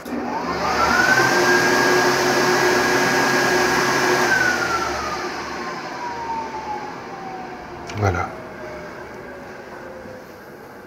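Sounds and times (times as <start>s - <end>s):
heated electric hand dryer in a Ritz hotel washroom: 0.0s - 10.2s.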